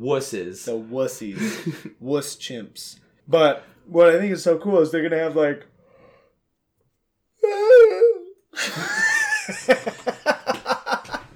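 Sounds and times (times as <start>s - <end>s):
speech: 0.0s - 5.7s
laughter: 1.3s - 2.0s, 8.6s - 11.3s
person yawning: 7.4s - 8.4s.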